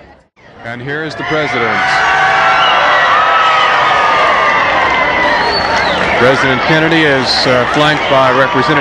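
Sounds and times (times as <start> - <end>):
speech: 0.6 - 2.3, 6.2 - 8.8
crowd cheering and whooping: 1.2 - 8.8
crowd applauding: 2.0 - 8.8.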